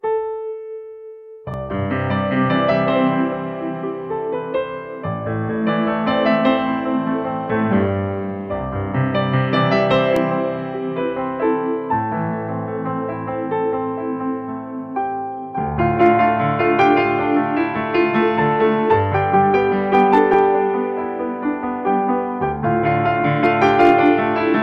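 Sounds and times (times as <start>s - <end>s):
piano cover: 0.0s - 24.6s.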